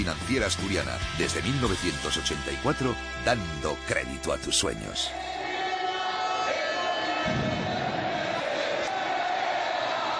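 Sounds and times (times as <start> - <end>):
speech: 0.0 - 5.4
stadium crowd chanting at El Molinón after Sporting's win over Villarreal: 5.1 - 10.1.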